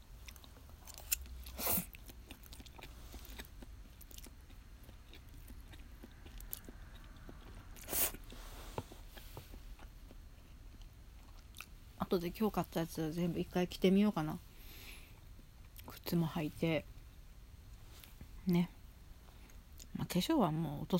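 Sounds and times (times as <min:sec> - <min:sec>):
steady low noise: 0:00.0 - 0:20.9
chewing pasta: 0:00.2 - 0:11.8
speech: 0:12.1 - 0:14.5, 0:16.1 - 0:16.9, 0:18.4 - 0:18.8, 0:20.1 - 0:20.9.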